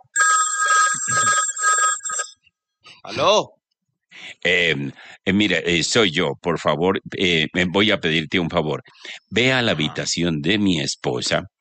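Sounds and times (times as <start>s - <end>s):
telephone ringing with a warbling electronic tone in a house: 0.0s - 2.5s
speech: 3.1s - 3.6s, 4.3s - 11.5s.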